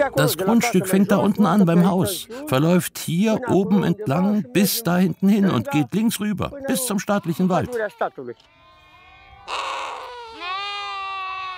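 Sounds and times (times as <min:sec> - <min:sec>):
speech: 0:00.0 - 0:08.6
lamb bleating in a stable: 0:06.7 - 0:11.5.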